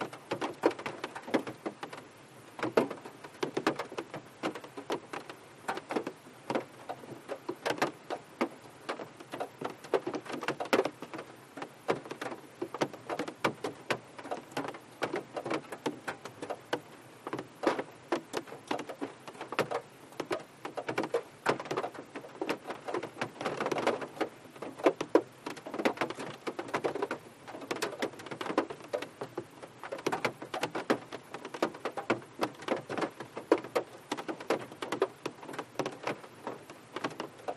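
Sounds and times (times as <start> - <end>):
light rain with heavy drips heard inside a car: 0.0 - 37.5.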